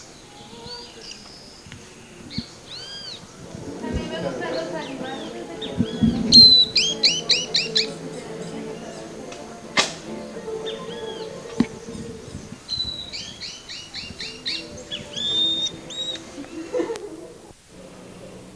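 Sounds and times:
bird whistled notes and chirps: 0.7s - 3.4s, 5.2s - 9.0s, 10.6s - 16.4s
laughter: 3.5s - 9.7s, 15.4s - 18.0s.

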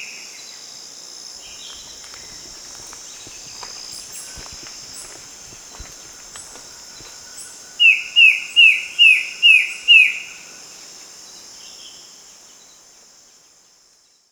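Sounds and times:
bird chirping: 1.4s - 10.0s.

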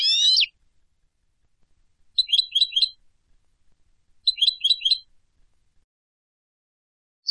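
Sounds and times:
European goldfinch calling: 0.0s - 0.5s, 2.2s - 3.0s, 4.2s - 5.1s.

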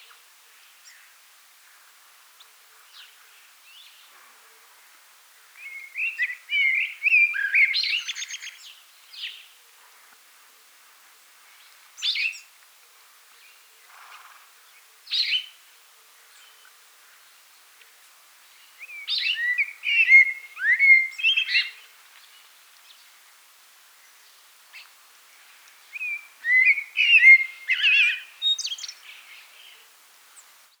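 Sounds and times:
common blackbird singing: 5.6s - 8.6s, 18.8s - 21.9s, 25.9s - 29.8s.

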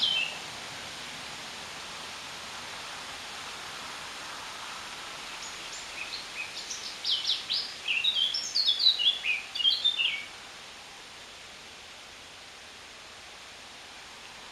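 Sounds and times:
Eurasian blackcap Sylvia atricapilla warbling song: 0.0s - 0.4s, 5.4s - 10.3s.

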